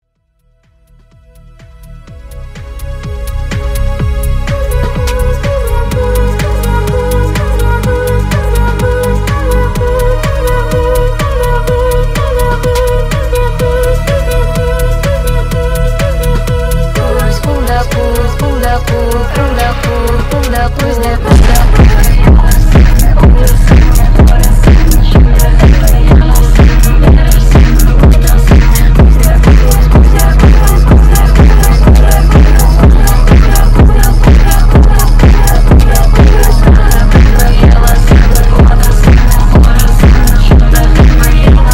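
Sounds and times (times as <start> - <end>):
phonk remix: 0.2 - 41.7.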